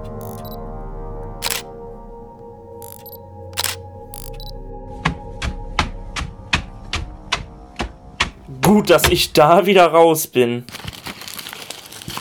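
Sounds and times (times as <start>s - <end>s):
camera shutter clicks: 0.2s - 0.6s, 1.4s - 1.6s, 2.8s - 4.4s
speech: 8.7s - 10.8s.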